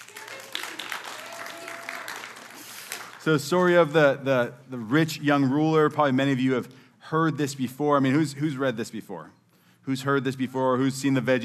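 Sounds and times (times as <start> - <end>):
audience clapping: 0.0 - 3.8
speech: 3.2 - 11.4.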